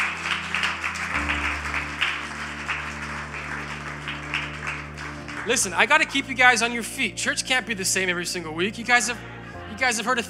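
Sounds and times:
audience clapping hands: 0.0s - 7.1s
speech: 5.5s - 10.2s.

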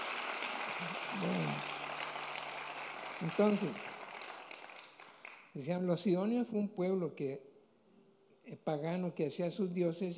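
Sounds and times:
audience applause: 0.0s - 5.5s
speech: 0.8s - 1.7s, 3.2s - 3.9s, 5.6s - 7.5s, 8.5s - 10.1s.

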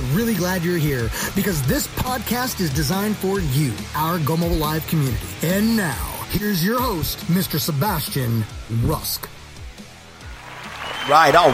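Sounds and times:
speech: 0.2s - 9.4s, 11.1s - 11.5s
applause: 10.3s - 11.5s.

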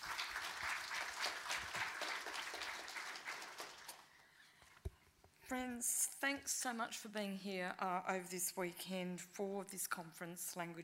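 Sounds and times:
audience applause welcoming a speaker at a language conference at the National Library of Australia: 0.0s - 4.2s
speech: 5.5s - 10.8s.

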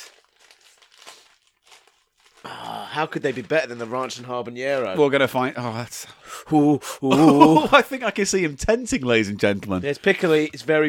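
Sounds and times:
crisp packet being opened: 0.0s - 4.2s
speech: 2.4s - 10.8s.

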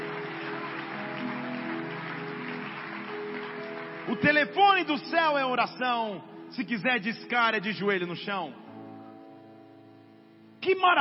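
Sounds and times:
audience applauding: 0.0s - 5.0s
speech: 4.1s - 8.6s, 10.6s - 10.9s.

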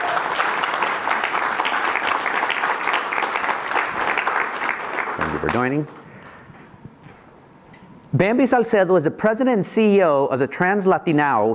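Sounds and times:
audience applause: 0.0s - 6.0s
speech: 5.4s - 6.0s, 8.1s - 11.5s.

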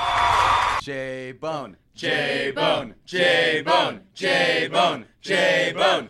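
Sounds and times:
applause sound effect: 0.0s - 0.8s
crowd chant sound effect: 2.0s - 6.0s.

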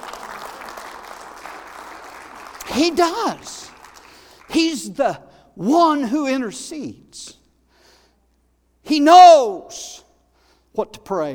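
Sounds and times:
hand claps: 0.0s - 4.6s
speech: 2.7s - 3.7s, 4.5s - 7.4s, 8.9s - 10.0s, 10.8s - 11.3s.

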